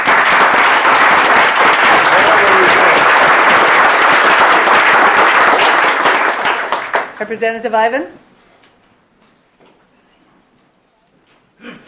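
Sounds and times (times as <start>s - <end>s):
audience applause: 0.0s - 7.3s
speech: 7.2s - 8.2s.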